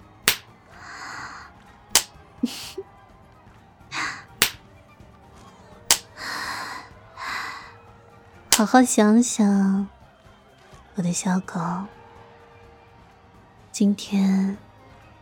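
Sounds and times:
sharp crisp slaps of a ruler striking: 0.0s - 0.5s, 4.4s - 4.6s, 5.9s - 6.1s
speech: 2.4s - 2.9s, 8.6s - 10.0s, 11.0s - 12.0s, 13.8s - 14.7s.

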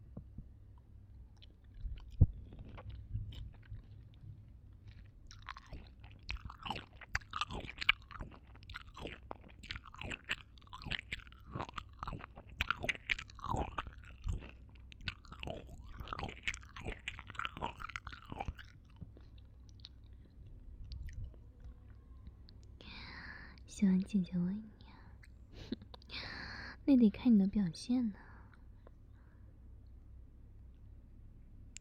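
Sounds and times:
wet chewing of something sweet: 1.3s - 22.7s
speech: 23.8s - 24.7s, 26.9s - 28.2s.

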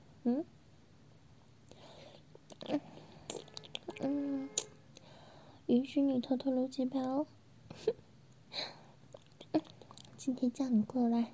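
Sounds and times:
speech: 0.2s - 0.5s, 5.9s - 8.0s, 10.3s - 11.3s
wet licking sounds: 2.4s - 4.0s, 9.1s - 10.2s.

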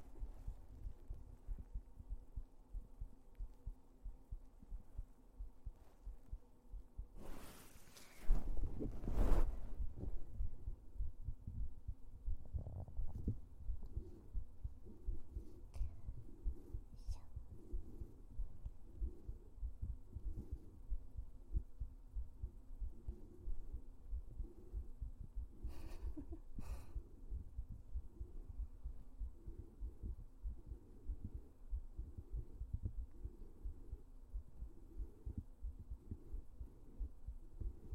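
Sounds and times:
rumbling hum: 0.0s - 37.9s
steady heartbeat heard through a stethoscope: 0.0s - 37.9s
faint scratchy rustles: 7.2s - 10.2s.

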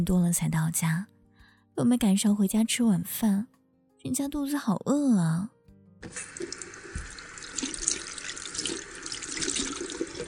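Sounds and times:
speech: 0.0s - 1.2s, 1.8s - 6.7s
hands washing under a running tap: 6.0s - 10.2s
tap running into a sink while washing hands: 6.0s - 10.2s.

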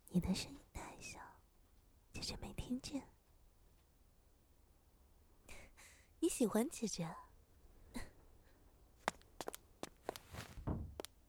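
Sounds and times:
speech: 0.2s - 1.2s, 2.7s - 3.1s, 6.3s - 7.2s
footsteps of someone running away: 9.0s - 11.1s.

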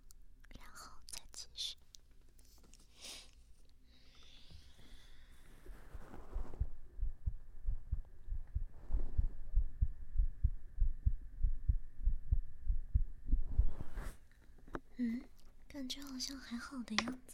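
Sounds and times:
faint constant hum: 0.0s - 17.3s
heartbeat thumps: 6.3s - 14.0s
speech: 15.0s - 17.3s.

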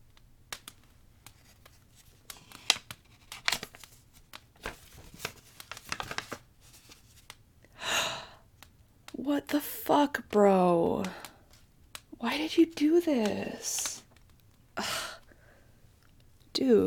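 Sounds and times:
paper envelope torn open: 1.3s - 7.3s
speech: 9.3s - 11.2s, 12.2s - 13.9s, 16.6s - 16.8s.

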